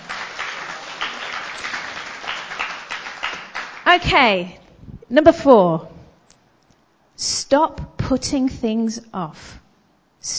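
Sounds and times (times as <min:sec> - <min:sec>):
audience clapping: 0:00.0 - 0:04.0
speech: 0:03.9 - 0:05.9, 0:07.2 - 0:09.6.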